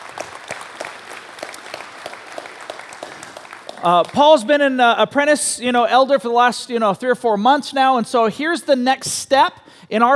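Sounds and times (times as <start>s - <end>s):
audience applause: 0.0s - 4.6s
speech: 3.8s - 10.1s.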